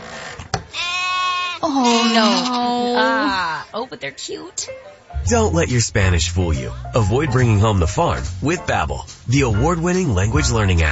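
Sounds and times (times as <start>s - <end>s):
sheep bleating at a market: 0.7s - 3.6s
speech: 1.6s - 10.9s.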